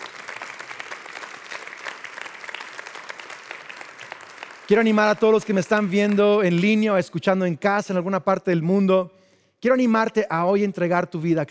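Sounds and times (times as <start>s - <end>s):
audience applause: 0.0s - 6.8s
speech: 4.7s - 11.4s.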